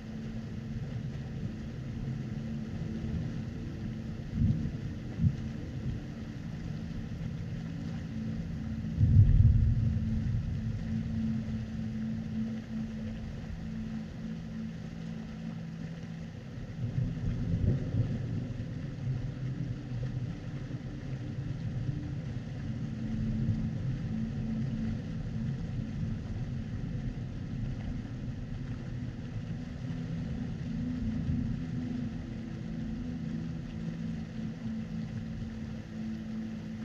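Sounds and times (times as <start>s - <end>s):
nature white noise: 0.0s - 36.8s.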